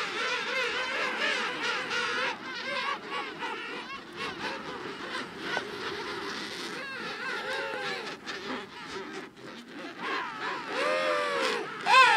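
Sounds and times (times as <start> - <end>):
king penguin colony calling in Antarctica: 0.0 - 12.1.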